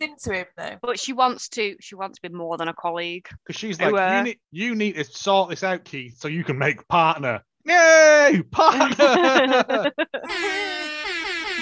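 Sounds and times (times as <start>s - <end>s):
speech: 0.1s - 10.9s
laughter: 7.8s - 11.5s
voice imitating an air horn alarm: 10.3s - 11.5s.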